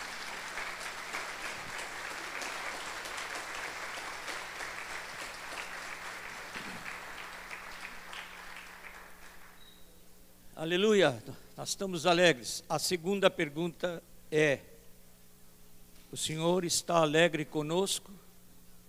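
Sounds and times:
audience applauding: 0.0 - 9.6
speech: 10.6 - 14.7, 16.1 - 18.2.

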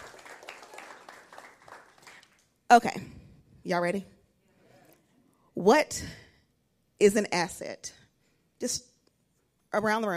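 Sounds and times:
audience hand clapping: 0.0 - 2.5
speech: 2.7 - 4.1, 5.6 - 6.2, 7.0 - 8.0, 8.6 - 8.9, 9.7 - 10.1.

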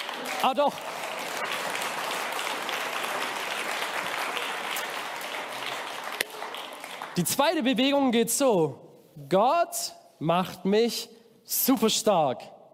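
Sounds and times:
audience applause: 0.0 - 7.4
speech: 0.4 - 1.6, 7.2 - 12.6.

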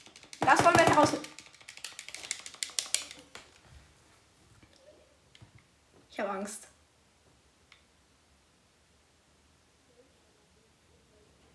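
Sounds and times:
computer keyboard keys pressed rapidly during a Roblox game: 0.0 - 3.5
speech: 0.5 - 1.3.

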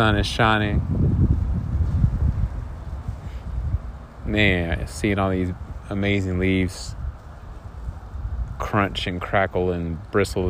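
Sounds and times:
speech: 0.0 - 1.2, 4.3 - 7.0, 8.6 - 10.4
light outdoor breeze in a park buffeting the microphone: 0.0 - 10.4.

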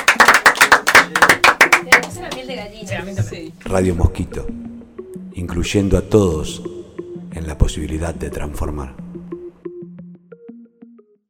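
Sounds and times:
applause: 0.0 - 2.5
speech: 2.5 - 4.6, 5.4 - 6.8, 7.4 - 9.0.

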